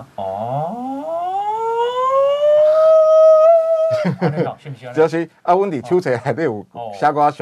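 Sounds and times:
air raid warning siren: 0.3 - 3.6
speech: 4.1 - 7.3.

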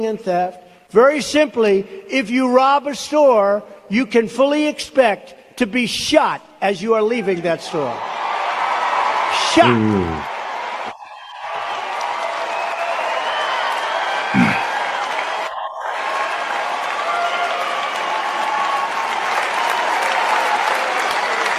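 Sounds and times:
speech: 0.0 - 8.2, 9.6 - 10.3
long crowd applause and cheering: 8.0 - 21.5.

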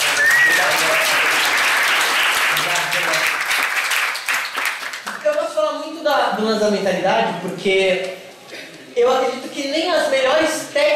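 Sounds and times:
whistle: 0.0 - 0.7
crowd applause: 0.0 - 5.4
speech: 6.4 - 8.2, 9.0 - 10.9.

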